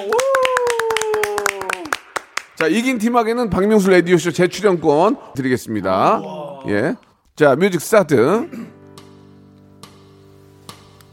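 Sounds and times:
people clapping and cheering: 0.0 - 3.0
speech: 2.6 - 8.8.

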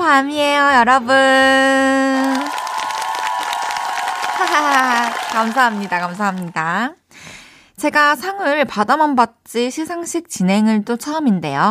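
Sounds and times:
speech: 0.1 - 2.6, 4.4 - 7.0, 7.8 - 11.7
cheering: 2.0 - 6.7
applause: 2.0 - 6.8.

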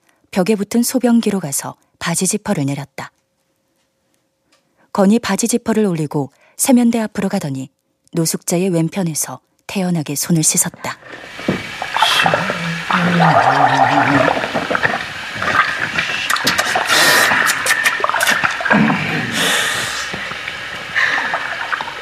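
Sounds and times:
speech: 0.4 - 3.2, 5.0 - 15.0
gargling while brushing teeth: 11.0 - 21.9.

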